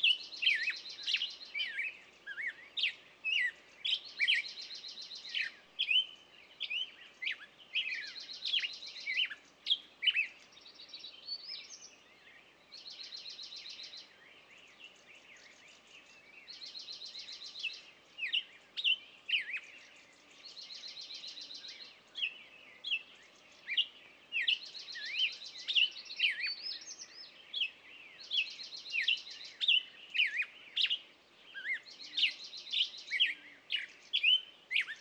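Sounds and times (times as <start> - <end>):
birds in the morning on a meadow: 0.0 - 34.9.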